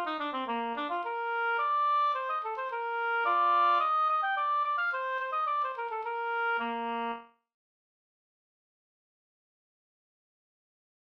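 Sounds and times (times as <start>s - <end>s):
slängpolska folk dance tune: 0.0s - 7.0s.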